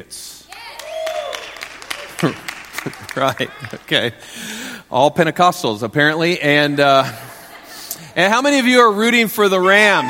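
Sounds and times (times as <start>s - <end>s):
speech: 0.0s - 0.4s, 2.2s - 7.3s, 8.2s - 10.0s
scattered clapping: 0.5s - 4.1s
crowd cheering with whoops: 0.5s - 4.2s, 9.4s - 10.0s
laughter: 1.9s - 4.3s, 6.4s - 8.9s.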